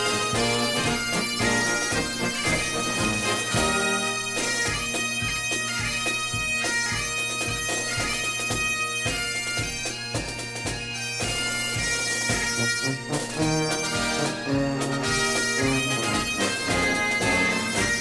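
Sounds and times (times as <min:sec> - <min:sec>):
bagpipes: 0:00.0 - 0:17.9
drums: 0:00.0 - 0:17.9.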